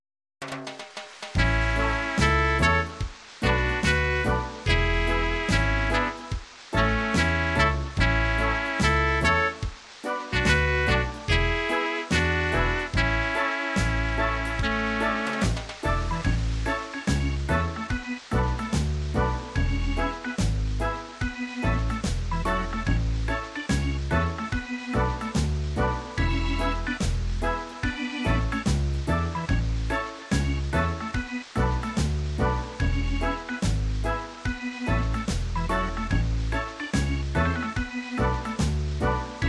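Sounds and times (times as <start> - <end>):
reggae music: 0.4 - 39.4.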